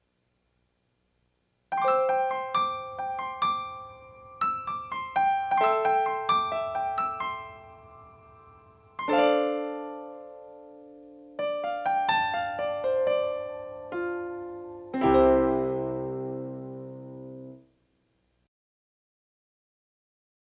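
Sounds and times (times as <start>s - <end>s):
piano: 1.7s - 17.7s.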